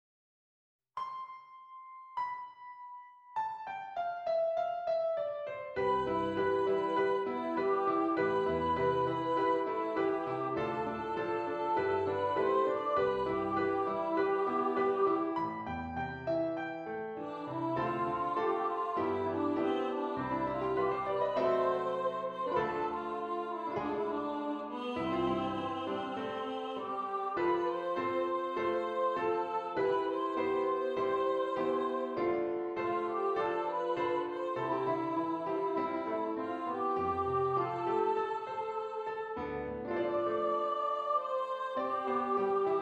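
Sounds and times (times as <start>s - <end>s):
piano piece: 1.0s - 42.8s.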